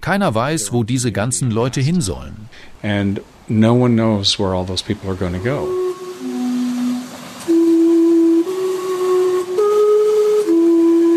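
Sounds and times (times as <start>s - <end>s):
speech: 0.0s - 5.9s
steam clock tower whistles in Gastown, Vancouver: 5.2s - 11.1s.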